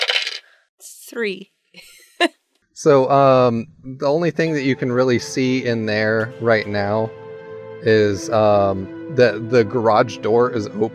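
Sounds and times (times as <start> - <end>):
dice clattering across a hard surface: 0.0 - 0.4
speech: 1.1 - 7.2, 7.8 - 10.9.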